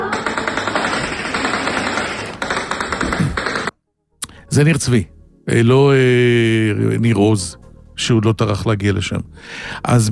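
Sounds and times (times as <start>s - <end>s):
recorded gunfire from intense fighting in Nir Zvi: 0.1s - 3.8s
speech: 4.6s - 10.1s.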